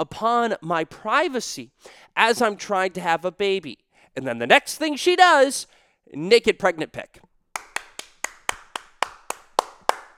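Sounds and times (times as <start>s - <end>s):
speech: 0.0s - 7.3s
single person clapping sarcastically: 7.6s - 10.1s.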